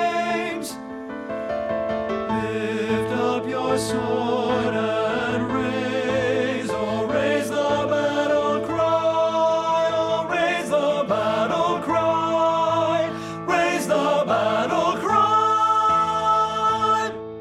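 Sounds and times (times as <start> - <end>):
men singing tenor: 0.0 - 0.8, 2.3 - 17.2.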